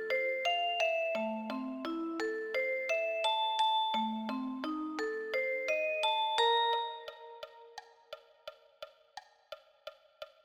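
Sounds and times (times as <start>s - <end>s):
vibraphone: 0.0s - 8.2s.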